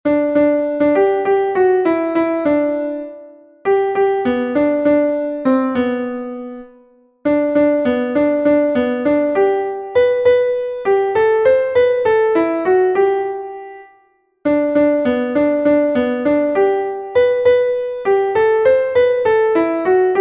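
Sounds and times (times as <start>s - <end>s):
piano: 0.0s - 20.1s.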